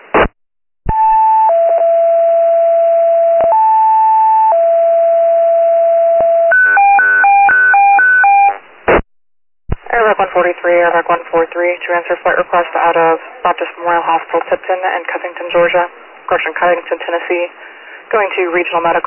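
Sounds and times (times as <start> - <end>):
electronic dispatch radio alert tones: 0.9 - 8.6
speech: 10.4 - 19.0.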